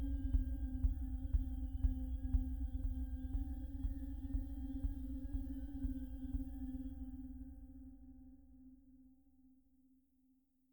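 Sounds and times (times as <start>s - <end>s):
rhythmic ambient music: 0.0s - 7.2s.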